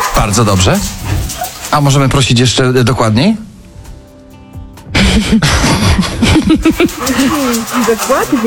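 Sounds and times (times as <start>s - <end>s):
speech: 0.3s - 3.5s, 6.6s - 8.4s
laughter: 4.9s - 8.4s
dog panting: 6.6s - 8.4s.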